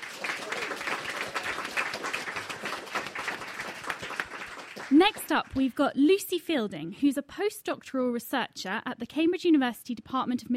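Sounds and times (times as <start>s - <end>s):
studio audience applause: 0.0s - 5.8s
speech: 5.0s - 10.5s.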